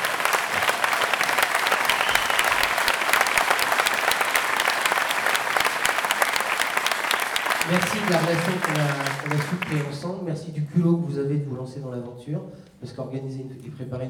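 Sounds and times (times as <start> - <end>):
audience applause: 0.0 - 10.1
speech: 8.1 - 14.0.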